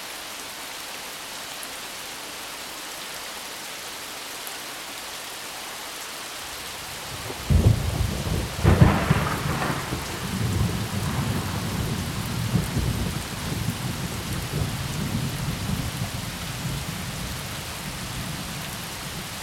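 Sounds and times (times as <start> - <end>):
thunderstorm: 7.1 - 19.3.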